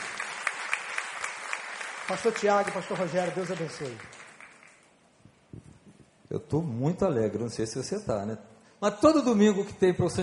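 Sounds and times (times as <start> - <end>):
crowd applause: 0.0 - 4.8
speech: 2.1 - 4.2, 6.5 - 10.2.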